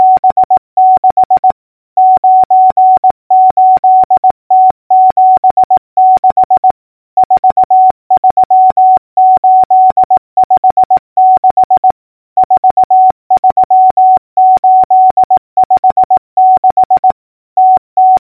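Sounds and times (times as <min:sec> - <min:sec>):
morse code clicks: 0:00.0 - 0:18.3.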